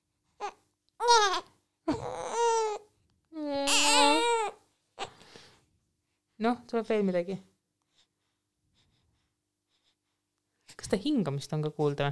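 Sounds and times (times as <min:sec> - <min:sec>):
baby babbling: 0:00.4 - 0:02.8, 0:03.4 - 0:04.6
speech: 0:06.4 - 0:07.5, 0:10.9 - 0:12.1.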